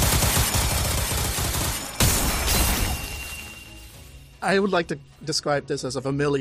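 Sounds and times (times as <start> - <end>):
rapid-fire magic missile barrage: 0.0 - 3.4
speech: 4.4 - 6.4.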